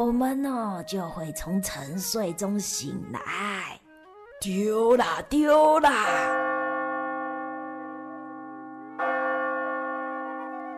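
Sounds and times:
speech: 0.0 - 3.8, 4.4 - 6.4
clock bell chiming: 6.0 - 10.7.

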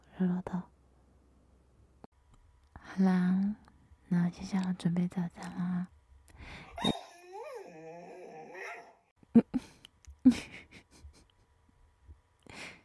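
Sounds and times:
speech: 0.2 - 0.7, 3.0 - 6.9
hungry dog whining and barking: 6.8 - 9.1.

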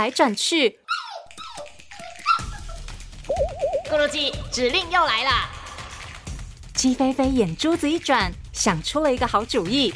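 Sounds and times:
speech: 0.0 - 1.1, 3.9 - 5.6, 6.8 - 9.9
small poodle whimpering: 0.9 - 2.8.

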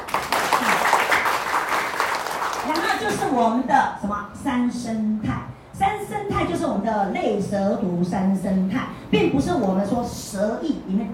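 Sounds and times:
audience applause: 0.0 - 3.0
speech: 3.1 - 11.1.

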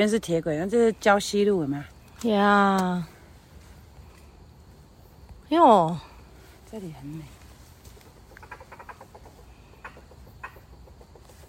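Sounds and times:
speech: 0.0 - 3.1, 5.5 - 6.1, 6.7 - 7.4
bamboo partridge calling: 7.8 - 11.4.

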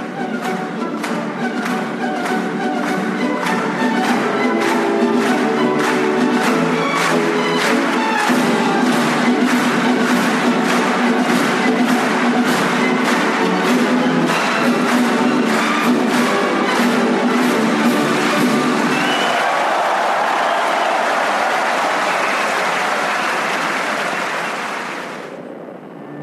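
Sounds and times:
audience clapping along: 0.0 - 25.5
orchestra playing a march: 0.1 - 19.0.

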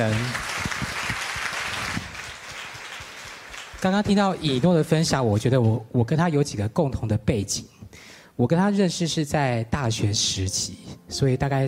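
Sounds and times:
speech: 0.0 - 0.5, 3.8 - 11.6
audience clapping hands in applause: 0.0 - 5.0.

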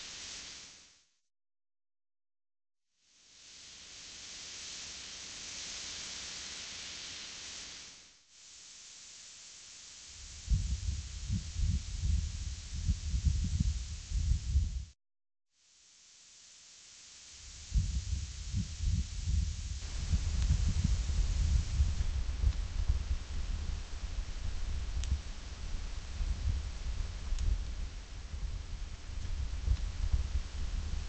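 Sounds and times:
breeze hissing: 0.0 - 0.9, 3.0 - 14.9, 15.7 - 31.0
wind gusts rumbling: 10.2 - 14.9, 17.5 - 31.0.

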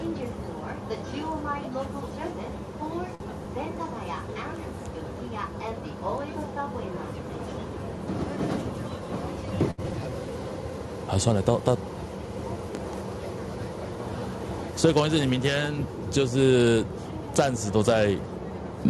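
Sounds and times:
Yamanote Line commuter train running in Tokyo: 0.0 - 18.8
people chattering: 0.0 - 18.8
speech: 1.0 - 9.7, 11.1 - 12.0, 14.8 - 18.8
train clunk: 8.0 - 9.9.

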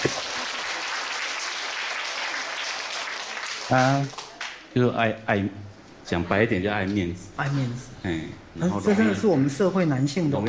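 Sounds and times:
applause: 0.0 - 4.6
speech: 3.7 - 10.4.

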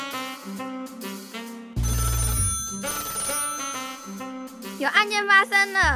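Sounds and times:
telephone ringing: 1.8 - 4.6
speech: 4.8 - 5.9.

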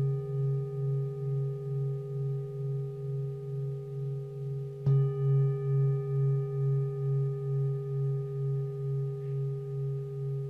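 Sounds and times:
singing bowl ringing: 0.0 - 10.4.

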